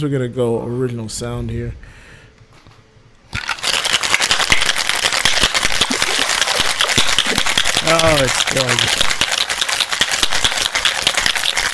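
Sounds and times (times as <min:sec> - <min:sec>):
speech: 0:00.0 - 0:02.0, 0:08.0 - 0:09.2
ice rattling in a cocktail shaker being shaken: 0:03.3 - 0:11.7.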